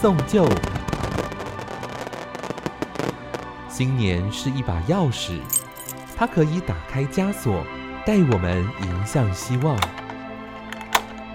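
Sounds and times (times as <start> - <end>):
speech: 0.0 - 0.8, 3.8 - 5.6, 6.2 - 10.0
fireworks crackling and booming: 0.0 - 4.0.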